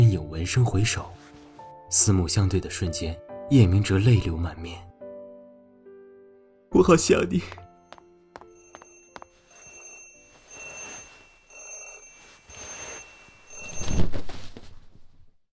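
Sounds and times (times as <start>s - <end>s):
speech: 0.2s - 1.2s, 1.9s - 4.9s, 6.7s - 7.6s
alarm clock ringing: 7.7s - 14.2s.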